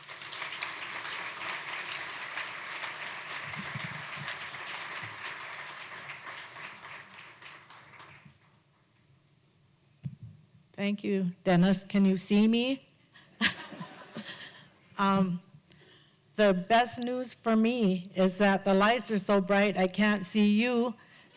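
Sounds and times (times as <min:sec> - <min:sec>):
audience applause welcoming a speaker to the stage: 0:00.0 - 0:08.4
speech: 0:10.8 - 0:12.9, 0:15.0 - 0:15.5, 0:16.4 - 0:21.1
laughter: 0:13.3 - 0:14.7.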